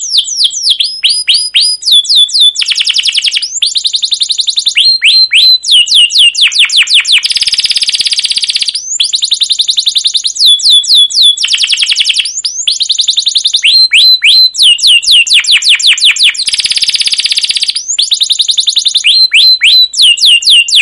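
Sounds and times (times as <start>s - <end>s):
canary song with varied high trills, chirp runs and whistled notes: 0.0s - 20.8s.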